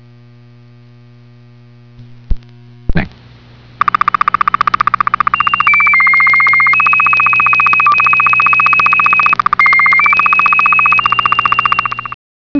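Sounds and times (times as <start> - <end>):
SSTV signal: 3.8 - 12.5.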